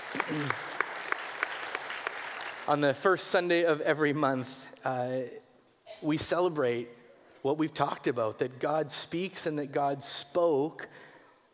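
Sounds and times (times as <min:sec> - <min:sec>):
audience clapping: 0:00.0 - 0:03.1
speech: 0:00.1 - 0:00.7, 0:02.7 - 0:11.0.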